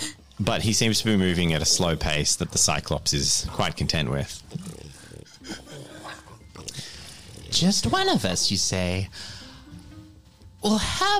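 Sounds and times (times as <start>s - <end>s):
speech: 0.4s - 4.7s, 7.6s - 9.4s, 10.6s - 11.1s
heavy labored strained breathing: 3.2s - 8.0s, 9.1s - 9.8s.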